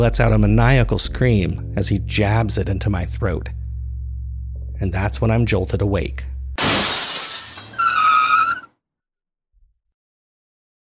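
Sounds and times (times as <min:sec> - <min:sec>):
speech: 0:00.0 - 0:03.6, 0:04.8 - 0:06.3
police car screeching to a stop: 0:07.6 - 0:08.7.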